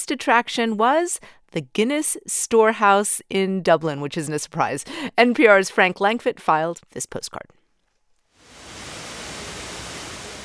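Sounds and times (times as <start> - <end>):
speech: 0.0 - 7.6
indoor waterfall: 8.4 - 10.4.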